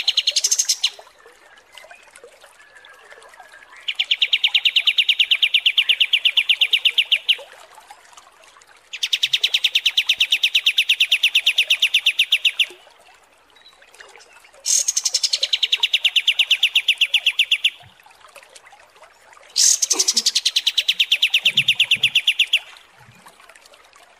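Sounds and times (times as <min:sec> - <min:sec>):
striated grassbird song: 0:00.0 - 0:01.0, 0:03.5 - 0:07.4, 0:08.9 - 0:12.8, 0:14.6 - 0:17.9, 0:19.6 - 0:22.8.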